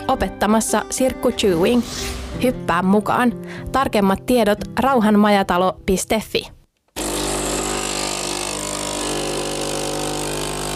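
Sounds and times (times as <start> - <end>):
speech: 0.1 - 6.6
stovetop espresso maker brewing: 7.0 - 10.7.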